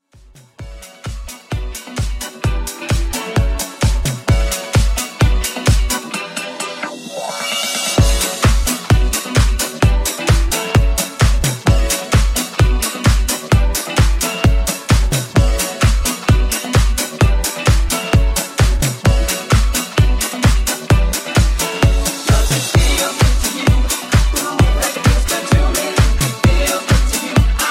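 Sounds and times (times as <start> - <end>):
130 bpm music track: 0.2 - 27.6.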